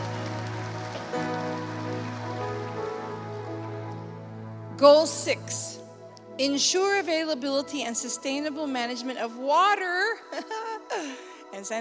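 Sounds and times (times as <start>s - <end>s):
church audience applauding: 0.0s - 4.1s
speech: 4.8s - 5.8s, 6.4s - 11.7s.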